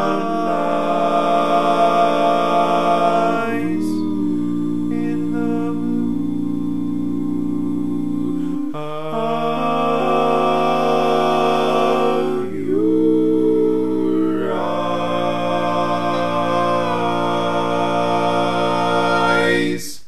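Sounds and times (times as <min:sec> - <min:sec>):
lead melody: 0:00.2 - 0:19.7.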